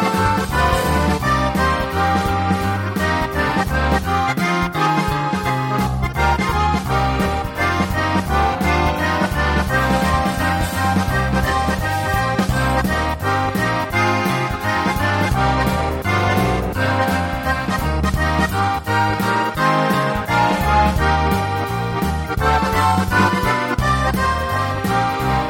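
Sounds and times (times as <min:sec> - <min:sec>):
accordion bass: 0:00.0 - 0:25.4.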